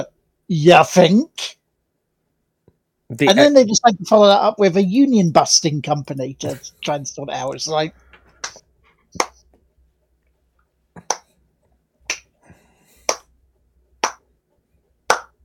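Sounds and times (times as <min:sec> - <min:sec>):
speech: 0:00.0 - 0:01.6, 0:03.1 - 0:08.6
slow hand claps: 0:08.4 - 0:08.6, 0:09.2 - 0:09.5, 0:11.0 - 0:11.3, 0:12.1 - 0:12.3, 0:13.0 - 0:13.3, 0:14.0 - 0:14.3, 0:15.1 - 0:15.4.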